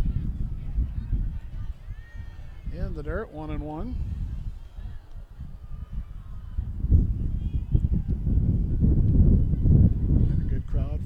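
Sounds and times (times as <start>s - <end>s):
strong unrelenting wind on microphone: 0.0s - 11.0s
speech: 2.9s - 4.1s.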